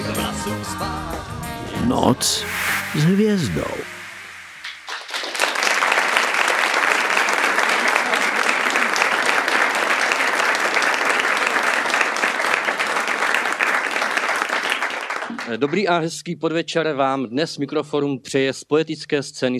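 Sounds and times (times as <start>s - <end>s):
speech: 0.4s - 4.0s, 15.5s - 19.5s
audience applause: 4.6s - 15.7s.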